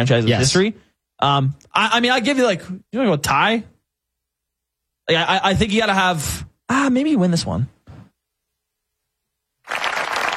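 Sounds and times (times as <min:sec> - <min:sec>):
speech: 0:00.0 - 0:03.7, 0:05.1 - 0:07.8
polite golf clap: 0:09.6 - 0:10.3.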